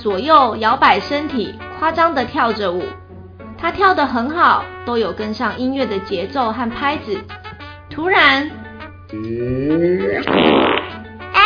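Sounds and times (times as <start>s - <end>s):
speech: 0.0s - 3.0s, 3.6s - 10.9s
huge fart-like sound of trousers ripping: 10.1s - 11.0s.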